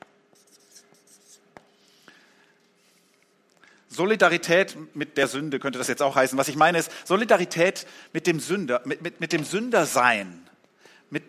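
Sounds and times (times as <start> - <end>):
pen scratching on paper in handwriting: 0.3 - 1.4
speech: 4.0 - 10.5, 11.1 - 11.2.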